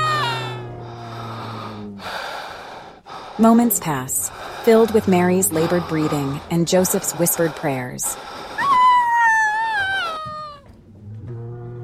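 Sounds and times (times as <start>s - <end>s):
newborn baby crying: 0.0s - 0.6s, 8.4s - 10.7s
speech: 3.4s - 8.4s.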